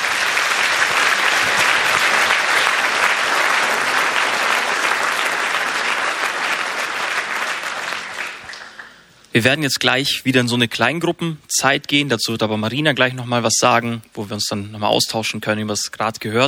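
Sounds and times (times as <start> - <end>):
audience applause: 0.0 - 9.1
speech: 9.4 - 16.4.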